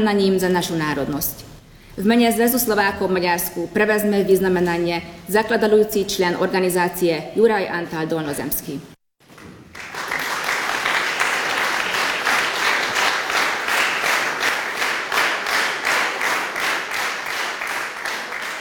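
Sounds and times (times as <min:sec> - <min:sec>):
speech: 0:00.0 - 0:08.9
long audience applause: 0:09.3 - 0:18.5.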